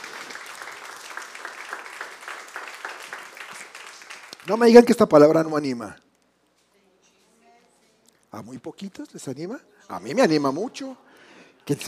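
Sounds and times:
applause: 0.0 - 5.2
speech: 4.5 - 6.0, 8.4 - 11.8.

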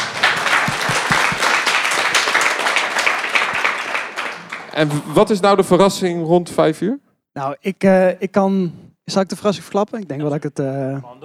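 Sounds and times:
audience applause: 0.0 - 5.4
speech: 4.8 - 11.2.

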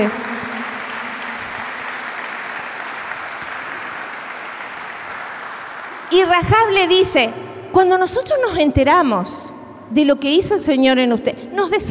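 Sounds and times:
speech: 0.0 - 0.2, 6.1 - 11.8
audience applause: 0.0 - 6.4.

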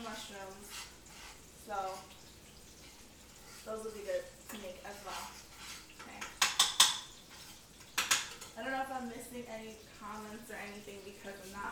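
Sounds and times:
metal utensil scraping and clinking against a pan: 0.0 - 8.6
soft stirring of ingredients with butter in a pan: 0.0 - 8.6, 9.7 - 11.7
speech: 1.7 - 2.2, 3.7 - 5.4, 9.0 - 11.7.

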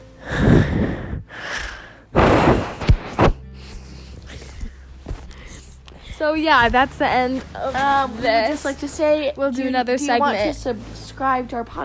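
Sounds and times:
heavy breathing blown into a camera microphone: 0.0 - 6.2
sharp thuds: 2.2 - 3.4
speech: 6.2 - 11.8.

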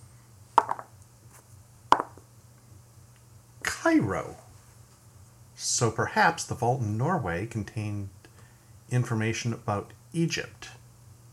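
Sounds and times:
faint low hum: 0.0 - 11.3
dice being rolled: 0.6 - 0.9, 1.9 - 2.2
speech: 3.9 - 4.4, 5.6 - 8.2, 8.9 - 10.8.

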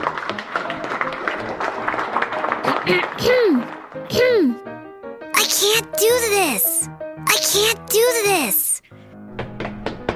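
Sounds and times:
audience applause: 0.0 - 3.9
speech: 2.8 - 4.7, 5.6 - 6.8, 7.5 - 8.6.

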